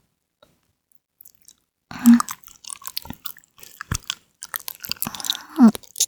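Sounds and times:
lips pressing together: 0:01.2 - 0:06.0.

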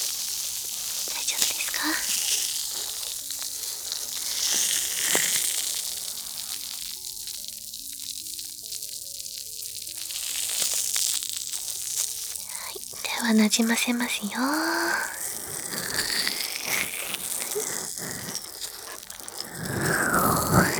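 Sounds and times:
carbonated foam bubbles fizzing: 0:00.0 - 0:20.7
speech: 0:13.3 - 0:15.2.

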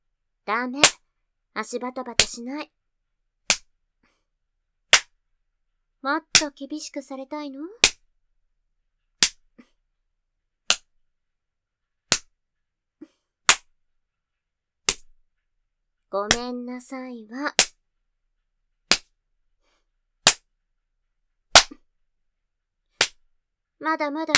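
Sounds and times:
speech: 0:00.5 - 0:01.0, 0:01.6 - 0:02.8, 0:06.0 - 0:07.9, 0:16.1 - 0:17.7, 0:23.8 - 0:24.3
hand spanking slaps on buttocks: 0:07.8 - 0:08.0, 0:09.2 - 0:09.4, 0:13.5 - 0:13.7, 0:14.9 - 0:15.1, 0:16.3 - 0:16.5, 0:18.9 - 0:19.1, 0:21.6 - 0:21.8, 0:23.0 - 0:23.2.

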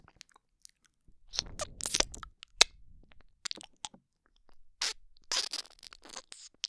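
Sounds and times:
ASMR kissing sounds: 0:01.3 - 0:02.7, 0:04.8 - 0:06.5
gentle ear sucking ASMR: 0:01.3 - 0:02.7.

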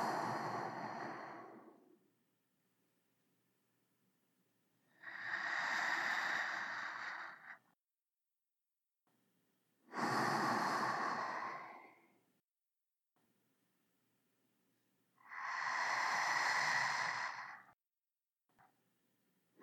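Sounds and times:
sleeping breath: 0:00.0 - 0:02.0, 0:04.9 - 0:07.8, 0:09.9 - 0:12.2, 0:15.2 - 0:17.8.

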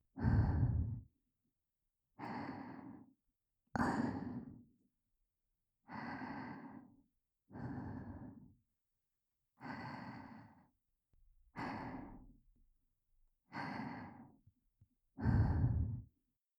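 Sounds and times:
breathing only: 0:00.2 - 0:01.0, 0:02.2 - 0:03.2, 0:05.9 - 0:08.6, 0:09.6 - 0:10.7, 0:11.5 - 0:12.4, 0:13.5 - 0:14.4, 0:15.2 - 0:16.1.

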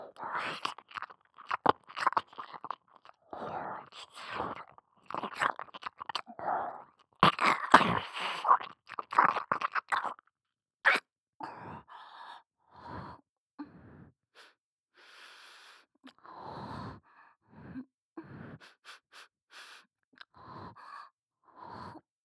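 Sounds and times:
soft ear licking in left ear: 0:00.2 - 0:06.4, 0:07.2 - 0:10.2.

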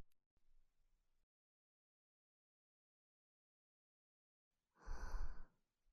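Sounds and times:
soft angelic breathing: 0:04.8 - 0:05.5.

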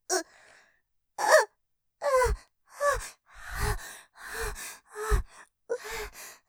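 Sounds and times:
person panting with trembling voice: 0:02.9 - 0:06.4.

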